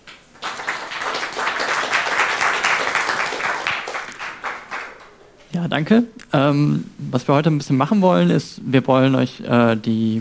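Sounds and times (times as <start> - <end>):
audience applause: 0.0 - 5.2
speech: 5.6 - 10.1.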